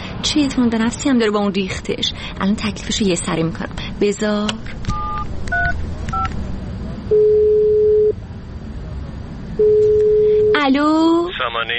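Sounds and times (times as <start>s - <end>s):
speech: 0.2s - 5.0s, 10.6s - 11.7s
telephone keypad beeps: 4.9s - 6.3s, 9.6s - 10.6s
telephone ringing tone: 7.1s - 8.2s, 9.6s - 10.7s.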